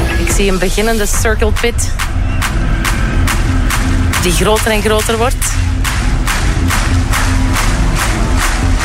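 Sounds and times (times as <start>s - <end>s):
speech: 0.4s - 2.2s, 4.2s - 5.7s
large concert crowd clapping: 2.0s - 8.8s.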